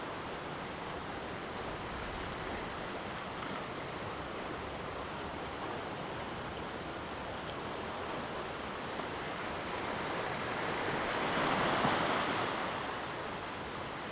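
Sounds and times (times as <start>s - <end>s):
waves and falling water on the North Devon coast: 0.0s - 14.1s.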